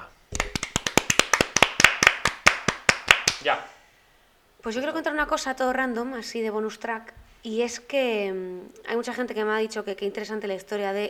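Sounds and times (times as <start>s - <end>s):
round of applause: 0.4s - 3.4s
speech: 3.4s - 3.7s, 4.6s - 11.0s.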